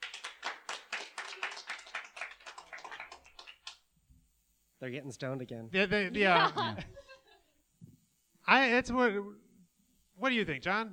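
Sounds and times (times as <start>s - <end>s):
applause: 0.0s - 3.9s
speech: 4.8s - 7.0s, 8.5s - 9.4s, 10.2s - 10.9s
laughter: 6.1s - 7.6s.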